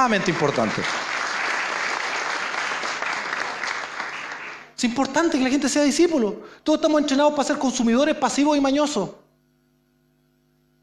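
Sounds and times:
speech: 0.0s - 1.1s, 4.8s - 9.2s
audience applause: 0.0s - 4.8s.

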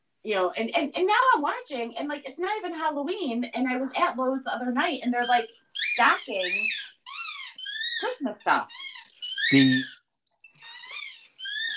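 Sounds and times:
speech: 0.2s - 6.9s, 8.0s - 8.9s, 9.5s - 10.0s
rubber squeak toy being chewed: 5.2s - 11.7s.

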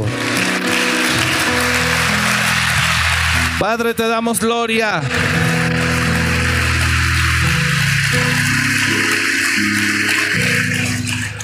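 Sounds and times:
audience applauding: 0.0s - 11.4s
sustained low keyboard or organ notes: 0.0s - 11.4s
speech: 3.6s - 5.4s.

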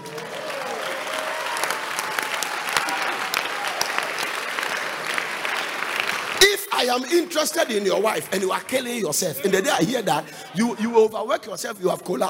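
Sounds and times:
audience clapping: 0.0s - 9.0s
speech: 6.8s - 12.2s.

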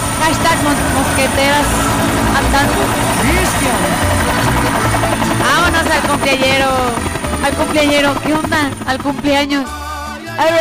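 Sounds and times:
helicopter flying: 0.0s - 10.5s
speech: 0.3s - 4.3s, 5.4s - 9.8s, 10.4s - 10.5s.

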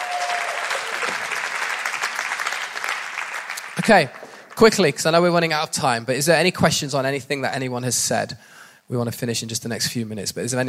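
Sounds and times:
audience applause: 0.0s - 4.9s
speech: 3.9s - 10.6s.

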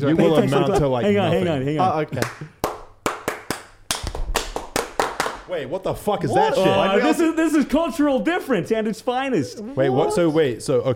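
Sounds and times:
speech: 0.0s - 2.5s, 5.5s - 10.9s
classroom clapping rhythm of the kind a teacher uses: 2.1s - 5.5s.

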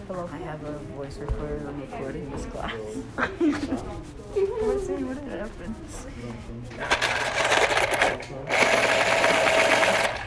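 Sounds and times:
speech: 0.1s - 7.5s, 8.1s - 9.6s
electric pencil sharpener whirring and grinding: 6.8s - 10.2s.

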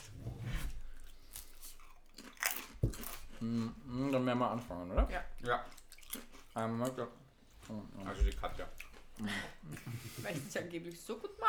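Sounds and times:
person biting and chewing potato chips: 1.2s - 3.7s
speech: 3.4s - 5.8s, 6.6s - 11.4s.

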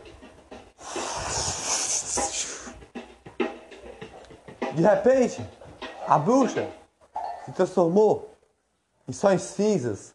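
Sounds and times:
puffs of breath: 0.8s - 2.8s
voice imitating wind blowing: 0.8s - 2.8s
speech: 4.8s - 6.8s, 7.5s - 8.3s, 9.1s - 10.1s.

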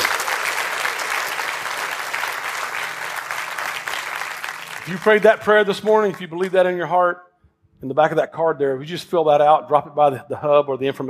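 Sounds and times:
audience applause: 0.0s - 6.3s
speech: 4.9s - 11.0s.

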